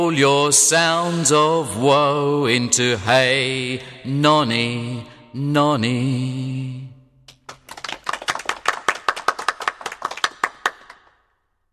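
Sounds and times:
speech: 0:00.0 - 0:06.8
people applauding after a song: 0:07.3 - 0:11.2.

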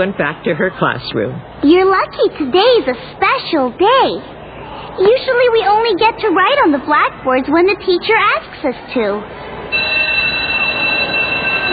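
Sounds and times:
speech: 0:00.0 - 0:09.8
school recess bell ringing: 0:09.7 - 0:11.7.

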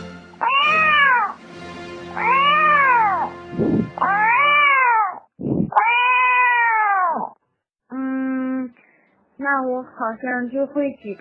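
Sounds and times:
person imitating a cat meowing: 0:00.4 - 0:01.4, 0:02.2 - 0:03.3, 0:04.0 - 0:08.2
speech: 0:09.9 - 0:11.1.

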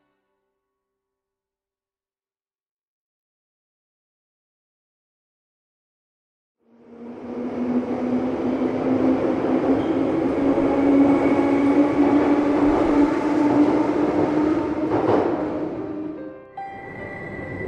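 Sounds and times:
subway train rumbling: 0:06.6 - 0:17.6.

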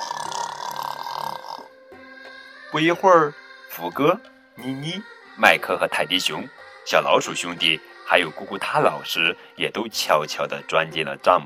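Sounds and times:
raspy nasal snore: 0:00.0 - 0:01.7
speech: 0:02.7 - 0:11.4.

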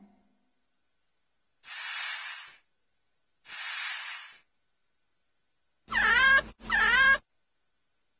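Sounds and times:
banyan rat calling: 0:05.9 - 0:07.2.

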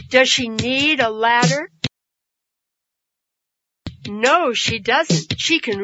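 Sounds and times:
speech: 0:00.1 - 0:01.8, 0:04.1 - 0:05.8
rhythmic hand claps: 0:04.7 - 0:05.8.

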